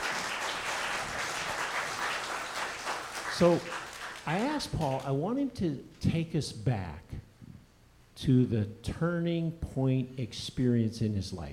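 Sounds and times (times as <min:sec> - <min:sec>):
audience applause welcoming a speaker onto the stage: 0:00.0 - 0:04.6
speech: 0:03.4 - 0:07.1, 0:08.2 - 0:11.5.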